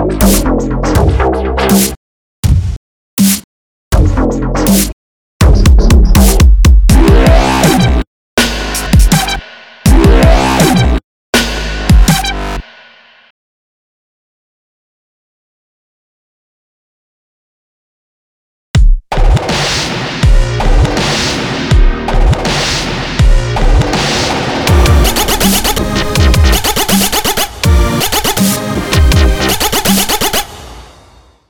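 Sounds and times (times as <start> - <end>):
dub music: 0.0 - 2.0, 4.0 - 12.6, 19.1 - 30.5.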